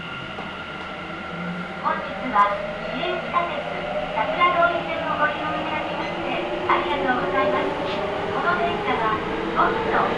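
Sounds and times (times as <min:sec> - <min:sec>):
Nagoya Municipal Subway Sakura-dori Line train rumble: 0:00.0 - 0:10.1
voices: 0:01.7 - 0:10.1.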